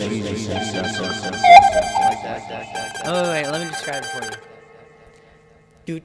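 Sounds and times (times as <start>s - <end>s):
synth sound: 0.3s - 4.8s.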